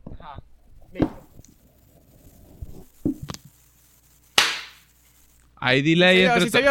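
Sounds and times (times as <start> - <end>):
speech: 0.3 - 1.2, 5.6 - 6.6
hand claps near the microphone: 4.4 - 4.8.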